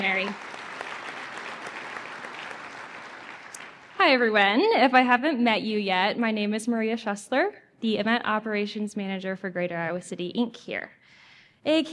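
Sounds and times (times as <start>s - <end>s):
speech: 0.0s - 0.5s, 4.0s - 11.0s, 11.6s - 11.9s
round of applause: 0.0s - 4.0s.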